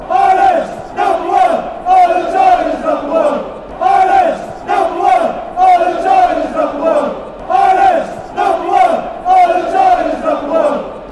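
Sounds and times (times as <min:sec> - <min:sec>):
football chants: 0:00.0 - 0:11.1.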